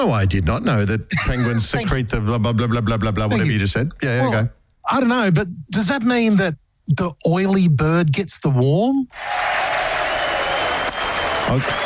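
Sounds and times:
speech: 0.0 - 9.7, 11.5 - 11.8
applause sound effect: 9.2 - 11.8.

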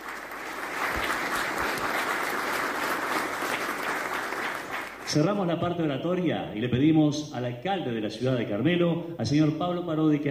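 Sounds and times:
crowd applause: 0.0 - 5.3
speech: 5.1 - 10.2.

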